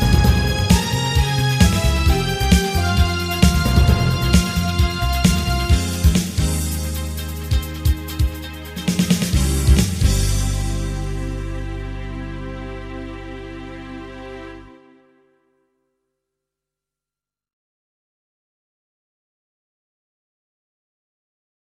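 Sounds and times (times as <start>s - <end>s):
background music: 0.0s - 15.7s.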